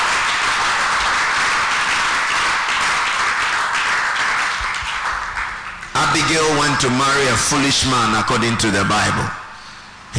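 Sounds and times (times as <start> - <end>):
crowd clapping hands: 0.0 - 7.2
speech: 6.2 - 9.4.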